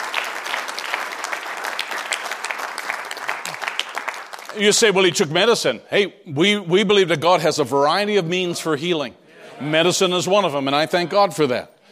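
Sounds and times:
audience clapping: 0.0 - 5.0
speech: 4.6 - 11.8.

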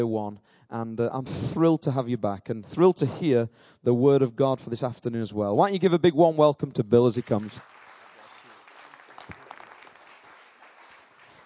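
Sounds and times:
speech: 0.0 - 7.7
crowd applause: 7.2 - 11.4.

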